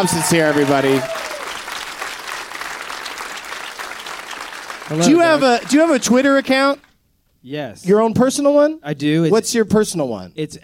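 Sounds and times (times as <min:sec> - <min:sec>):
speech: 0:00.0 - 0:01.3, 0:04.9 - 0:10.6
comedy club audience applause: 0:00.0 - 0:06.9.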